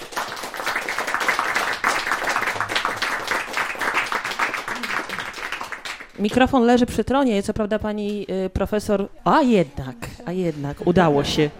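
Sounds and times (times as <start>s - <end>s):
audience applause: 0.0s - 6.2s
speech: 6.2s - 11.5s.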